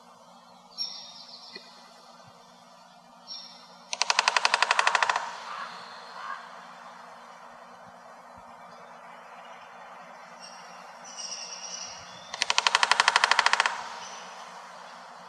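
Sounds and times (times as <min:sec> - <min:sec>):
American three-toed woodpecker drumming: 0:03.3 - 0:15.2.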